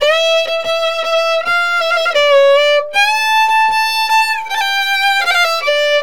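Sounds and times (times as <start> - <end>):
violin: 0.0 - 6.0.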